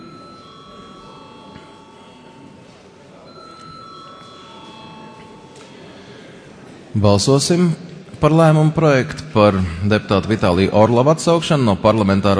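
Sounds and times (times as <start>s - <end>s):
parliament chamber bell ringing: 0.0s - 6.3s
murmur of voices: 0.0s - 12.3s
speech: 7.0s - 12.3s.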